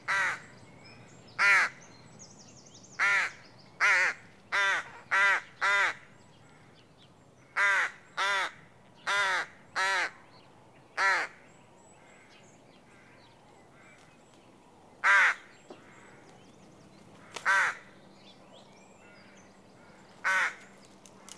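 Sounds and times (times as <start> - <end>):
rook caw: 0.1 - 0.5, 1.4 - 1.8, 3.0 - 6.8, 7.4 - 10.2, 11.0 - 11.4, 12.0 - 14.1, 15.0 - 16.4, 17.2 - 18.0, 19.0 - 20.8.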